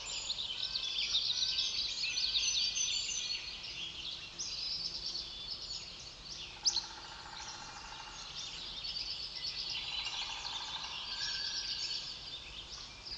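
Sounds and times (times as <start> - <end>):
coniferous forest ambience: 0.0 - 13.1.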